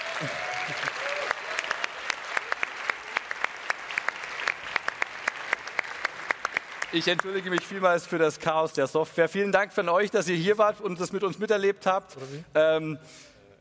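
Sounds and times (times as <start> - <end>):
audience applause: 0.0 - 7.8
speech: 0.2 - 0.9, 6.9 - 13.3.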